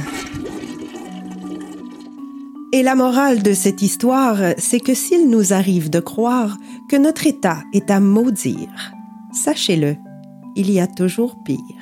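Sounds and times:
toilet flushing: 0.0 - 2.4
speech: 2.7 - 10.0, 10.6 - 11.7.

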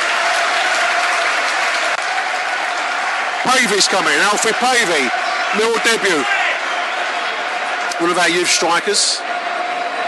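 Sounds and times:
stadium crowd applauding substitution: 0.0 - 10.0
speech: 3.4 - 6.4, 8.0 - 9.4.

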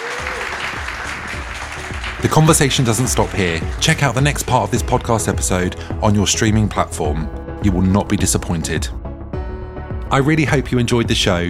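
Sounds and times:
audience applause: 0.0 - 4.6
speech: 2.2 - 9.0, 10.1 - 11.4.

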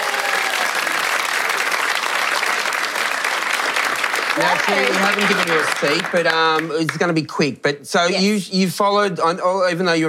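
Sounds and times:
studio audience applause welcoming a renovation expert onto a show: 0.0 - 7.4
speech: 4.4 - 10.0.

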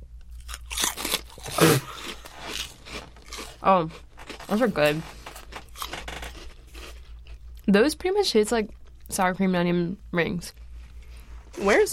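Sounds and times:
crunchy chewing of shrimp-flavored snack chips: 0.1 - 7.7
speech: 3.6 - 5.2, 7.7 - 10.6, 11.6 - 11.9.

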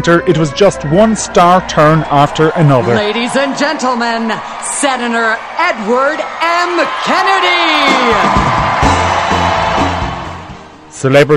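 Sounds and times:
speech: 0.0 - 8.7, 11.0 - 11.3
convention crowd cheering: 0.8 - 10.9.

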